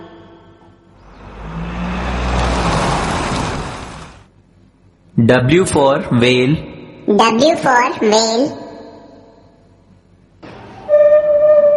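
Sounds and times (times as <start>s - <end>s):
van driving past: 0.9s - 4.3s
speech: 5.2s - 8.6s.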